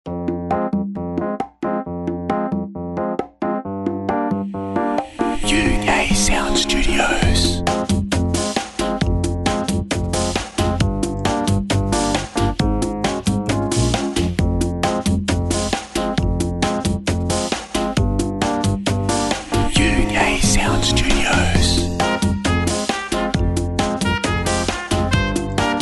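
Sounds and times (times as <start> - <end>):
jazzy chill out music: 0.1 - 25.8.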